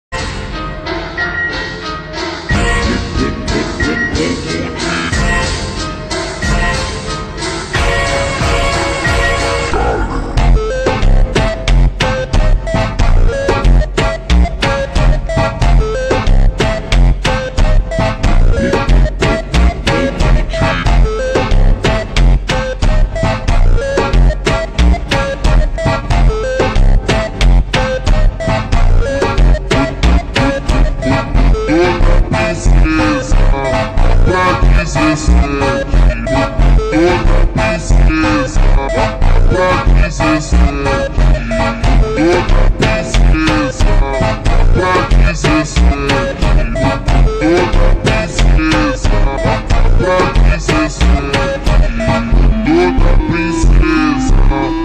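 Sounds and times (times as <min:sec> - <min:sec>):
slowed beeper funk music: 0:00.2 - 0:54.8.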